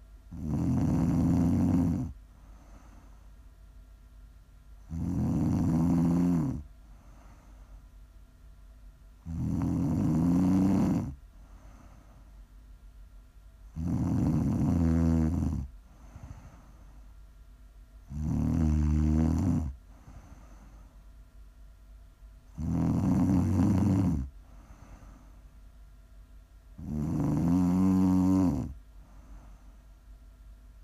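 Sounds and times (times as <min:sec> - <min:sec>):
faint steady hum: 0:00.0 - 0:30.8
person snoring: 0:00.3 - 0:03.0, 0:04.9 - 0:07.4, 0:09.2 - 0:11.9, 0:13.7 - 0:16.7, 0:18.1 - 0:20.6, 0:22.6 - 0:25.2, 0:26.8 - 0:28.8.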